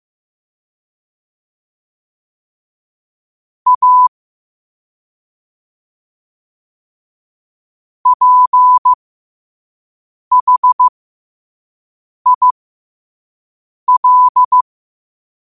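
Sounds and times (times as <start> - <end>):
morse code at 5 wpm: 3.7 - 4.1, 8.1 - 9.0, 10.3 - 10.9, 12.3 - 12.6, 13.9 - 14.6.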